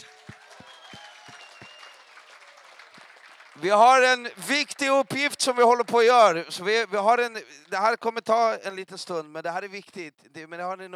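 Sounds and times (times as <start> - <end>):
audience applause: 0.0 - 7.8
speech: 3.6 - 10.9.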